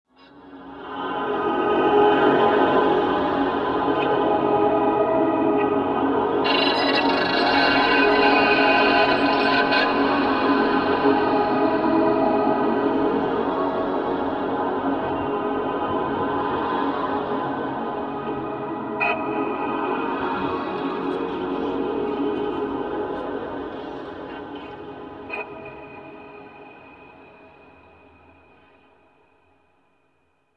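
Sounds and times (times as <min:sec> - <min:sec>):
ambient effect: 0:00.5 - 0:29.1.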